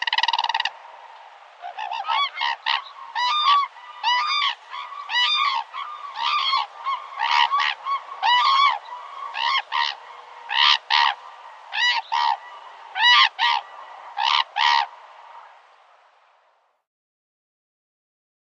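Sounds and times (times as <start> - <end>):
hooded cranes calling: 1.6 - 15.6.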